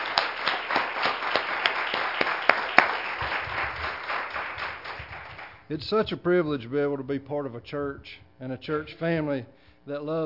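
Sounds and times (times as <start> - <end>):
church audience clapping: 0.0 - 5.7
speech: 5.7 - 10.2.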